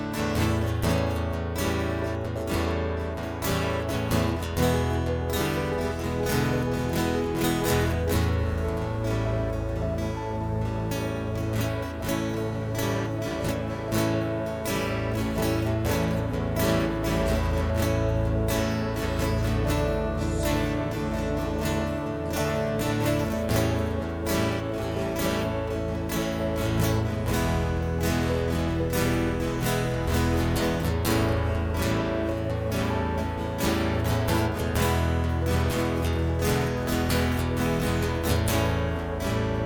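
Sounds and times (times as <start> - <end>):
instrumental intro: 0.2 - 39.6.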